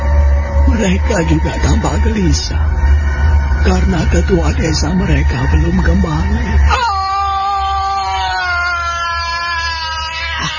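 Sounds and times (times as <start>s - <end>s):
low rumble: 0.0s - 10.5s
speech: 0.8s - 2.9s, 3.6s - 6.9s
person screaming: 6.7s - 10.5s.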